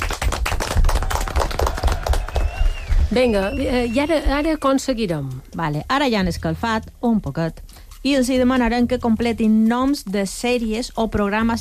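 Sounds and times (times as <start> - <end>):
loud applause from a group: 0.0 - 4.0
speech: 3.1 - 11.5.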